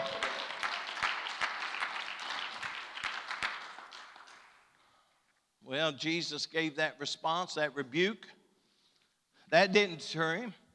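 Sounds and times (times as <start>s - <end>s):
audience hand clapping: 0.0s - 4.7s
speech: 5.7s - 8.4s, 9.5s - 10.6s.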